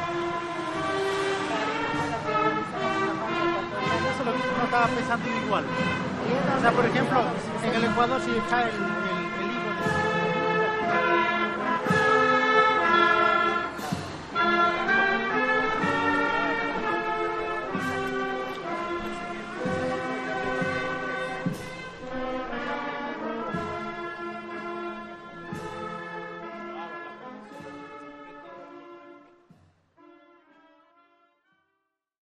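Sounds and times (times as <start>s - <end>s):
procession in Ecuador: 0.0s - 28.8s.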